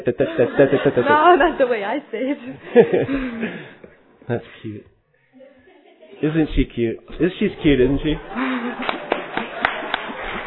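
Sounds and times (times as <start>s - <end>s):
speech: 0.0s - 4.9s, 6.2s - 8.9s
audience applause: 7.6s - 10.4s
sharp loud claps: 8.7s - 10.4s.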